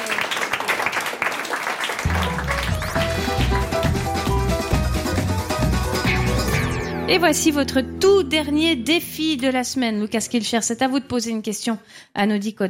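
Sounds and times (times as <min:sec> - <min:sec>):
audience applause: 0:00.0 - 0:05.8
bass-heavy musical sting: 0:02.1 - 0:09.6
speech: 0:07.1 - 0:12.6.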